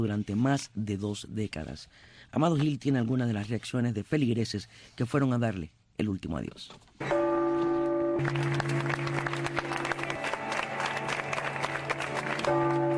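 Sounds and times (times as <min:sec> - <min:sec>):
speech: 0:00.0 - 0:07.2, 0:08.2 - 0:10.0
bells of the Cathedral of Havana ringing: 0:07.0 - 0:12.9
sustained applause at a funeral: 0:08.2 - 0:12.9.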